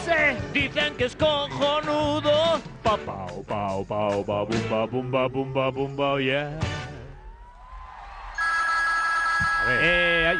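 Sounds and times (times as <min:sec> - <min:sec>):
speech: 0:00.1 - 0:06.9, 0:09.6 - 0:10.3
telephone ringing: 0:08.4 - 0:10.3.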